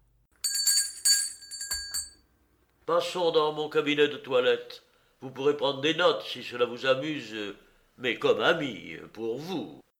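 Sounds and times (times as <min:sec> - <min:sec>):
bell rung to summon a valet: 0:00.4 - 0:02.2
speech: 0:02.9 - 0:09.8.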